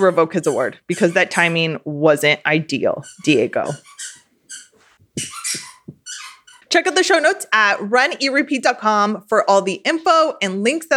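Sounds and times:
dog squeaking a rubber toy: 0.0 - 1.8, 3.0 - 6.8
speech: 0.0 - 4.2, 6.7 - 10.9.

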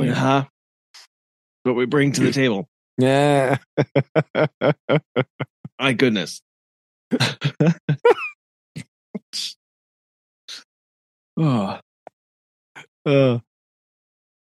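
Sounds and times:
speech: 0.1 - 6.5, 7.1 - 9.6, 11.4 - 11.8, 13.0 - 13.5
laughter: 1.9 - 6.3, 7.1 - 8.3
person sneezing: 7.2 - 7.9.

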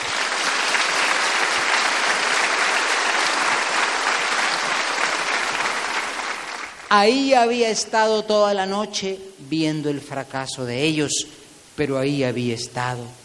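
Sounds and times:
crowd applause: 0.0 - 6.9
speech: 6.9 - 13.2.

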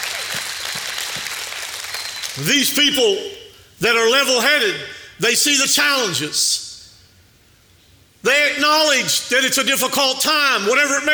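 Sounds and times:
audience hand clapping: 0.0 - 2.5
speech: 2.4 - 6.6, 8.2 - 11.1.

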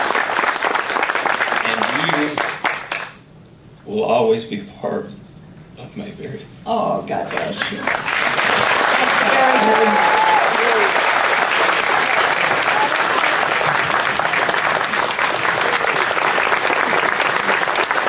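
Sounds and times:
large audience applause in a cinema: 0.0 - 3.2, 7.3 - 18.0
speech: 3.9 - 5.2, 5.9 - 8.1, 9.2 - 11.0.

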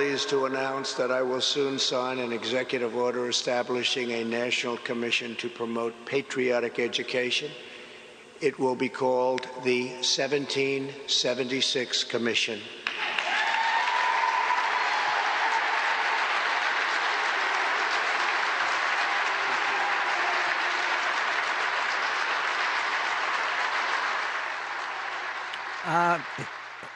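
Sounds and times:
speech: 0.2 - 7.7, 8.4 - 12.8
crowd applauding a speech: 12.9 - 26.9
brief voice: 25.8 - 26.5.

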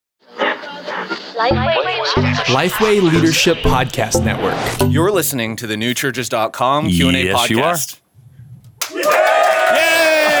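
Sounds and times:
speech: 1.4 - 8.0
delayed crowd cheer: 8.8 - 10.3.

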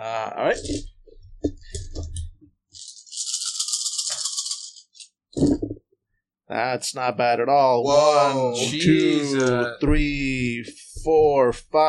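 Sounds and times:
speech: 0.4 - 0.9, 6.6 - 11.8
dice rattling in a cupped hand and being rolled: 2.8 - 5.1.

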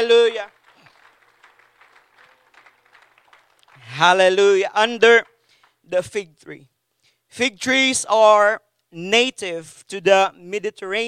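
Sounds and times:
speech: 0.0 - 0.6, 3.9 - 5.3, 5.9 - 6.7, 7.3 - 11.0
audience clapping: 0.0 - 6.0.

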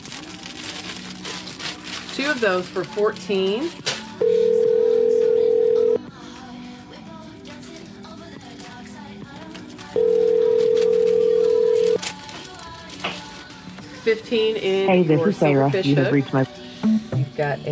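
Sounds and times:
speech: 2.2 - 4.4, 14.1 - 16.5, 17.4 - 17.7
telephone ringback tone on a call to a number from Canada: 4.2 - 6.0, 10.0 - 12.0.

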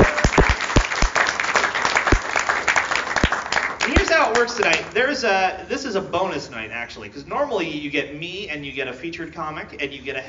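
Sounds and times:
audience clapping: 0.0 - 4.9
speech: 4.4 - 10.2.

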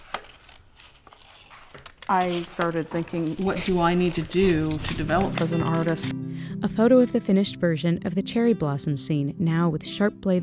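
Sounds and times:
scissors cutting green paper: 0.0 - 6.1
speech: 2.1 - 10.4.

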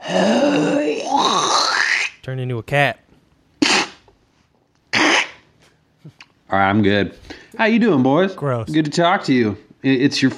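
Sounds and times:
speech: 0.1 - 3.0, 6.0 - 10.3
cough: 3.6 - 4.0, 4.9 - 5.4.

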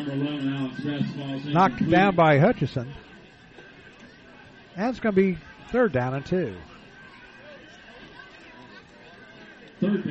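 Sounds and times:
crowd chatter at high school football game: 0.0 - 10.0
speech: 0.1 - 3.1, 4.8 - 6.7, 9.8 - 10.0.

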